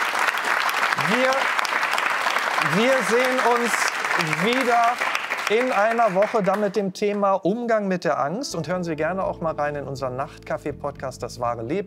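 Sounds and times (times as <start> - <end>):
audience applause: 0.0 - 6.8
speech: 1.1 - 1.7, 2.6 - 11.8.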